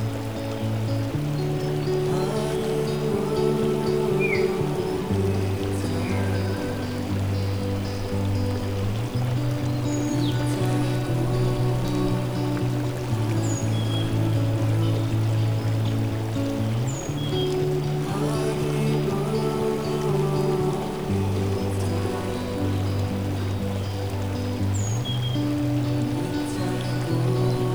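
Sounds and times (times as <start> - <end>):
gentle relaxing melody: 0.0 - 27.7.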